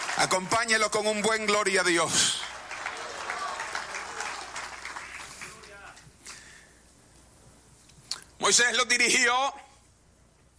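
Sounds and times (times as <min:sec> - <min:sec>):
audience applause: 0:00.0 - 0:06.0
speech: 0:00.2 - 0:02.6, 0:08.5 - 0:09.6.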